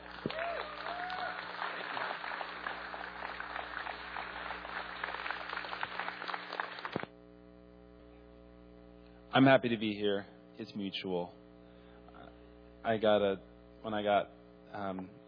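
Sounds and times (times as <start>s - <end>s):
standing audience clapping at a chapel gathering: 0.0s - 7.1s
speech: 9.4s - 11.4s, 12.8s - 15.2s.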